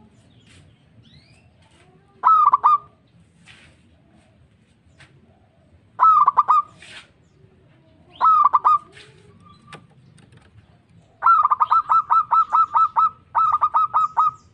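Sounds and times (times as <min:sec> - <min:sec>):
local-type zebra dove cooing: 0:02.2 - 0:03.0, 0:05.3 - 0:06.8, 0:07.5 - 0:09.8, 0:11.0 - 0:14.5.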